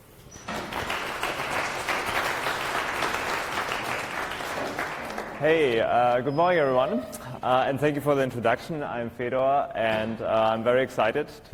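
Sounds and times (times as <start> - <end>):
conference audience applause at FOSDEM: 0.4 - 5.8
speech: 5.4 - 11.5.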